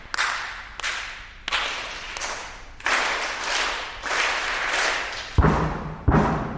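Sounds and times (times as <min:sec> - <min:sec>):
audience clapping: 0:00.0 - 0:05.4
heavy low thuds: 0:05.4 - 0:06.5.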